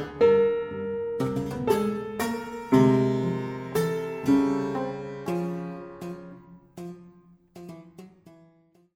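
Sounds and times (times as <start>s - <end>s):
piano quartet: 0.0s - 6.3s.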